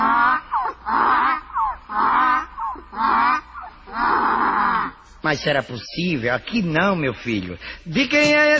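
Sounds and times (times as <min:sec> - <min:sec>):
donkey braying: 0:00.0 - 0:05.2
speech: 0:05.3 - 0:08.5.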